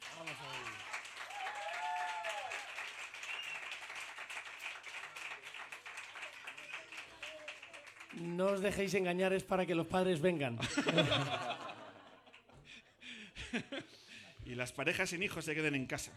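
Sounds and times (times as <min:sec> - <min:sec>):
audience applause: 0:00.0 - 0:08.8
speech: 0:08.2 - 0:11.6, 0:14.5 - 0:16.1
laughter: 0:10.6 - 0:14.4.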